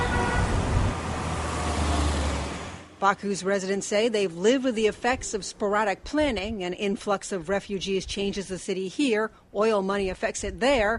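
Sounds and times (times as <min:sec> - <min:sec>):
road traffic in Baku city: 0:00.0 - 0:05.3
speech: 0:03.0 - 0:10.9.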